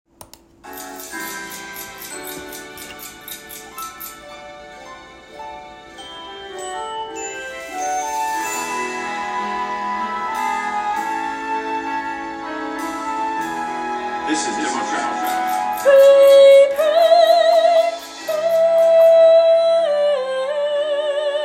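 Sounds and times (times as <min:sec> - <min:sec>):
soprano singing: 0:08.0 - 0:21.4.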